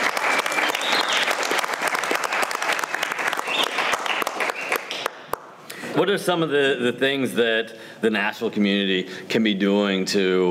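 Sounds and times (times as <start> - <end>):
audience applause: 0.0 - 5.5
speech: 6.0 - 10.4.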